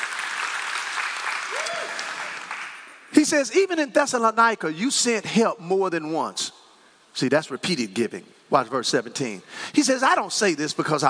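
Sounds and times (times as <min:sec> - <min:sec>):
church congregation applauding with a hand clap: 0:00.0 - 0:03.1
speech: 0:03.2 - 0:06.5, 0:07.2 - 0:11.0.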